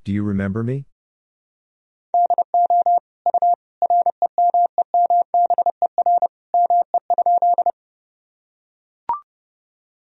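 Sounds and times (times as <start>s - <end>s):
person speaking: 0.0s - 0.9s
steady mid-pitched tone beeping Morse code: 2.2s - 7.8s.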